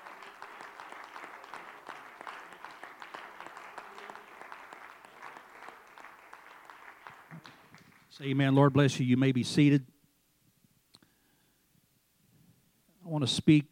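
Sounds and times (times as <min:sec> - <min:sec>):
audience clapping hands: 0:00.0 - 0:08.4
speech: 0:08.2 - 0:09.9, 0:13.3 - 0:13.7.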